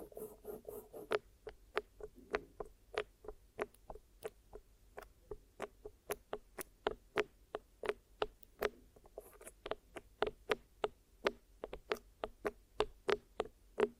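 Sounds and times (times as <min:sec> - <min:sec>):
soft rubbing and crackling: 0:00.0 - 0:01.2, 0:09.0 - 0:09.8
crisp taps and clicks of ear massage and cleaning: 0:00.0 - 0:13.9.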